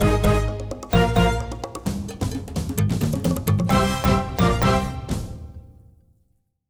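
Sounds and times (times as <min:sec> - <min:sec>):
rescue music jingle: 0:00.0 - 0:02.4, 0:03.5 - 0:05.7.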